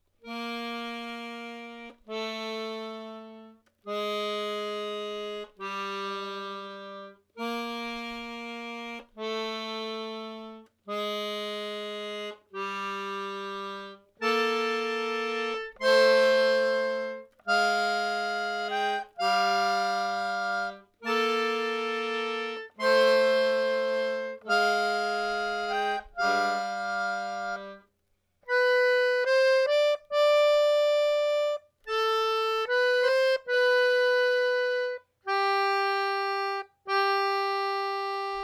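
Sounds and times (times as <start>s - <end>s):
accordion: 0.0s - 38.4s.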